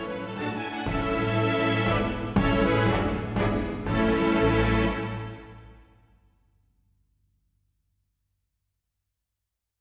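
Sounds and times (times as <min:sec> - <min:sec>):
drums: 0:00.0 - 0:05.5
string quintet playing a minuet: 0:00.0 - 0:05.9.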